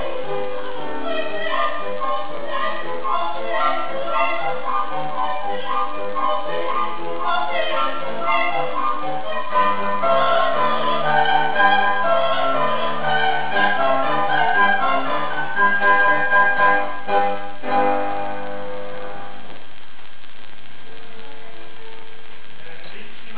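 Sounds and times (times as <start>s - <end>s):
two pianos playing: 0.0s - 19.6s.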